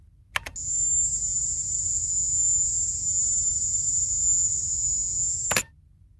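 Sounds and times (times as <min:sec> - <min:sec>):
click: 0:00.3 - 0:00.6, 0:05.4 - 0:05.6
recorded Havana Syndrome sound: 0:00.6 - 0:05.6.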